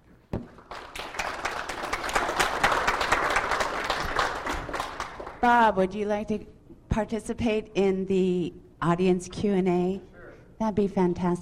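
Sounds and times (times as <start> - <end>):
audience applause: 0.6 - 5.4
speech: 5.4 - 11.4.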